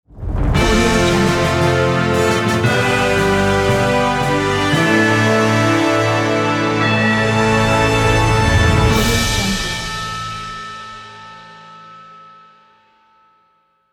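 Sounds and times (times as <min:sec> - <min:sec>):
win fanfare logo: 0:00.6 - 0:10.6.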